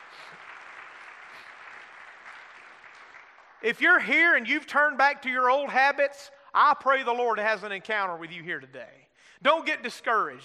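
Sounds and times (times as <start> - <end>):
congregation at a church service applauding in praise: 0.0 - 4.4
speech: 3.6 - 10.4.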